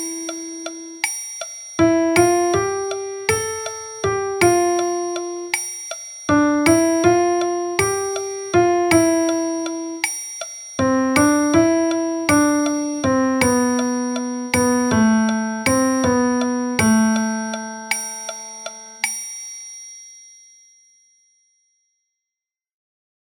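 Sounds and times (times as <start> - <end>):
piano music: 0.0 - 1.1, 1.8 - 10.2, 10.8 - 19.1.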